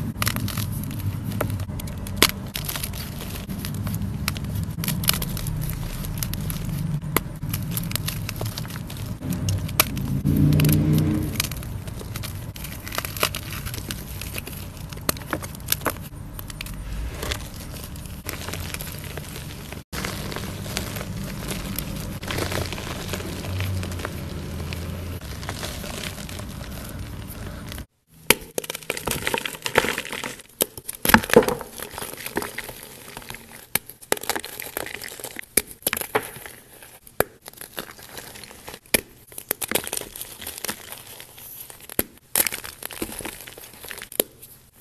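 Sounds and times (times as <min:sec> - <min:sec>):
low rumble: 0:00.0 - 0:27.9
crinkling and crackling from crushing: 0:00.0 - 0:44.7.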